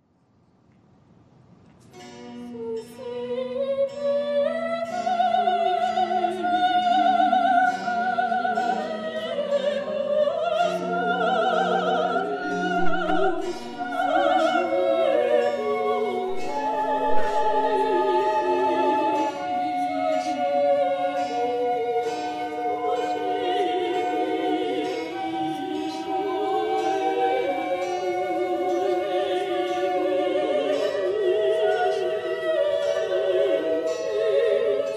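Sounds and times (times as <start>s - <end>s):
two sopranos singing an aria: 2.6s - 34.9s.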